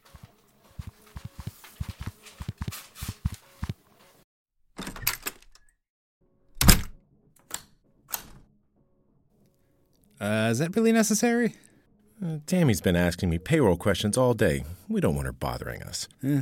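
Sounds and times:
footsteps of people walking to an office: 0.0 - 4.1
speech: 10.2 - 11.6, 12.4 - 16.4.

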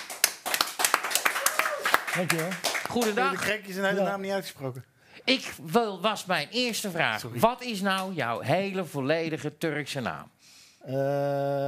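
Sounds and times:
applause: 0.0 - 3.5
speech: 2.2 - 11.6.

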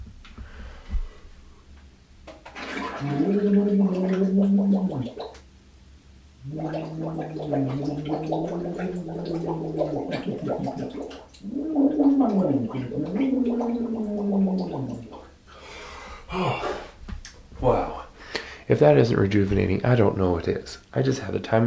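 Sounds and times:
quick breath: 0.4 - 1.4, 15.5 - 16.9, 18.2 - 18.7
person humming and bubbling into sink water: 2.6 - 5.4, 6.4 - 15.3
speech: 3.0 - 4.1, 7.0 - 15.1, 18.7 - 21.6.

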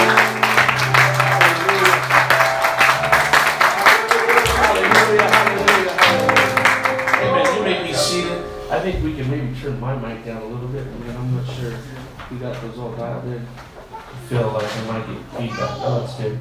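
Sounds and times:
audience clapping: 0.0 - 7.8
low musical drone: 0.0 - 10.6
speech: 11.8 - 13.7, 14.3 - 16.3.

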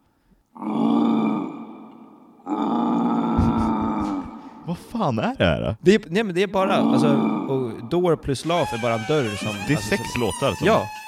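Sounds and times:
deep rough growl sound effect: 2.5 - 4.4
laughter: 3.4 - 4.4
speech: 4.7 - 11.0.

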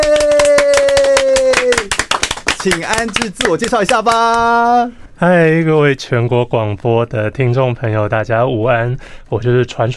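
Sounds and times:
applause: 0.0 - 4.5
speech: 2.6 - 9.9.

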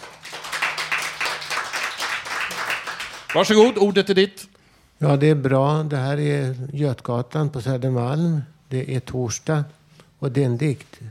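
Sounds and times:
applause, hands clapping: 0.0 - 3.8
speech: 3.3 - 11.0.

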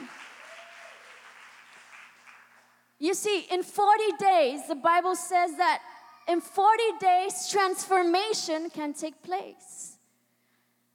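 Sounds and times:
audience applause: 0.0 - 2.8
speech: 3.0 - 9.9.

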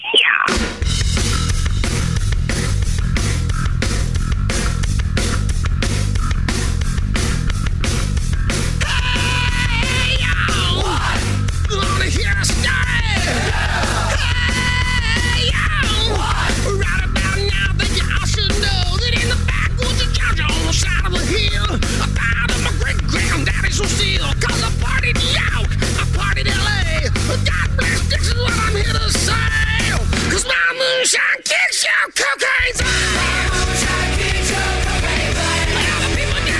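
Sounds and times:
rock and roll band song playing loud: 0.0 - 31.1, 32.5 - 36.5
dense gritty guitars: 0.0 - 31.6, 32.2 - 36.5
steady pounding drum beat: 0.5 - 30.5, 32.7 - 36.5
shouted harmonised vocal line: 8.8 - 11.4, 12.0 - 16.8, 32.3 - 36.5.

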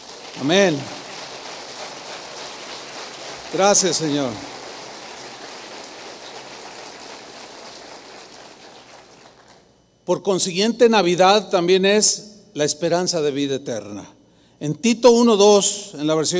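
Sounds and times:
audience applause: 0.0 - 9.7
speech: 0.4 - 1.0, 3.5 - 4.5, 10.1 - 16.3.

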